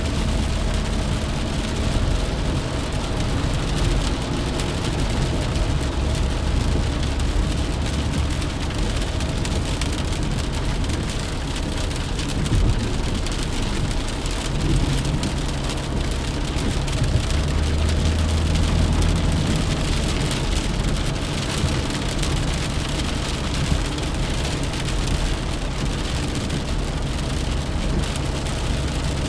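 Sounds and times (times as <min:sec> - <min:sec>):
rain on a car: 0:00.0 - 0:29.2.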